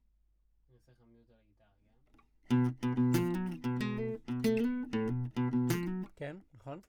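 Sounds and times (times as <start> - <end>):
classical guitar: 2.5 - 6.2.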